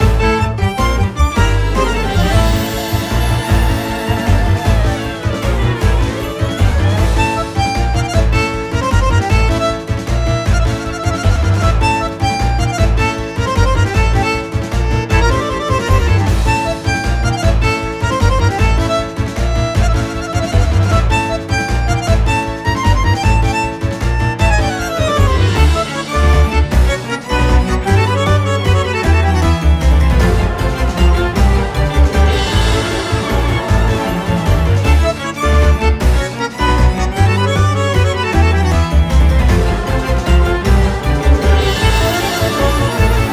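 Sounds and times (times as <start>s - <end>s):
battle music loop: 0.0s - 43.3s.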